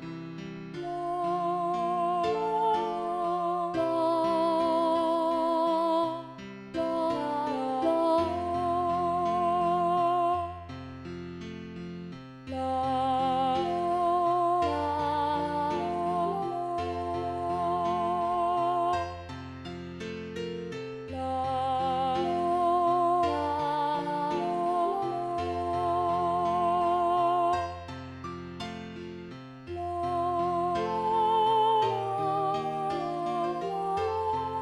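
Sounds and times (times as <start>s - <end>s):
ladies choir singing with alto: 0.8s - 10.6s, 12.6s - 19.1s, 21.2s - 27.8s, 29.8s - 34.6s.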